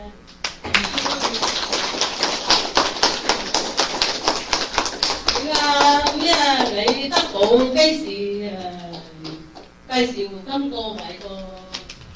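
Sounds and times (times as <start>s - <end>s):
audience applause: 0.5s - 7.6s
speech: 10.0s - 11.4s.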